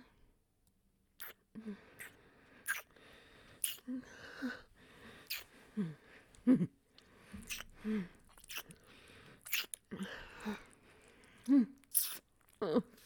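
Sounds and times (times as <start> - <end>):
wet noises: 1.2 - 2.9, 3.6 - 3.9, 5.2 - 5.5, 7.4 - 13.0.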